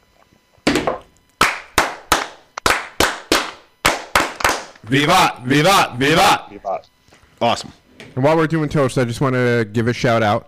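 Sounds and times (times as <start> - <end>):
Masonic brothers clapping in unison for a toast fire: 1.4 - 4.8
speech: 4.9 - 10.4.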